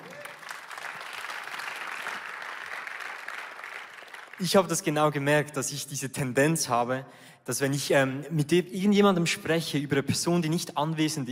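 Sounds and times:
audience applause: 0.0 - 4.4
speech: 4.4 - 11.3.

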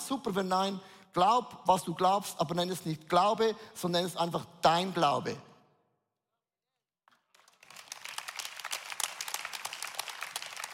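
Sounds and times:
speech: 0.1 - 5.5
applause: 7.1 - 10.7.

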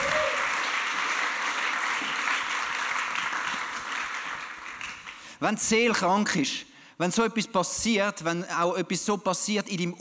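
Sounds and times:
audience applause: 0.0 - 5.2
speech: 5.4 - 10.0.

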